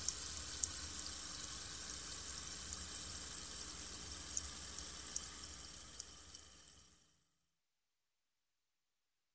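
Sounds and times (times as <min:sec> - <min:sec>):
antacid powder fizzing in water: 0:00.0 - 0:06.9.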